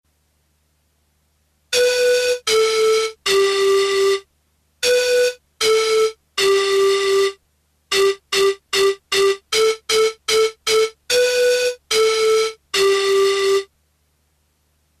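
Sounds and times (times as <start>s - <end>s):
simple nursery melody: 1.7s - 13.7s.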